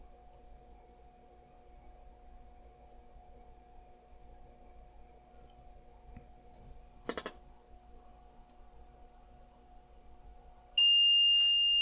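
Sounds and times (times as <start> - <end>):
faint low hum: 0.0 - 11.8
radio station dead-air alarm: 10.8 - 11.8.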